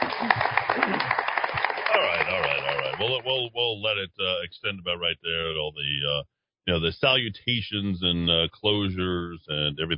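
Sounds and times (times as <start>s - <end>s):
audience applause: 0.0s - 3.5s
laughter: 0.0s - 9.9s
speech: 3.0s - 9.9s.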